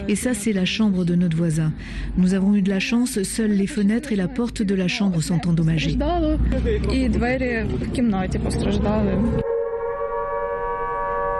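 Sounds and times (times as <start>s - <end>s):
speech: 0.0s - 9.5s
air raid sirens in Kiev: 8.5s - 11.3s.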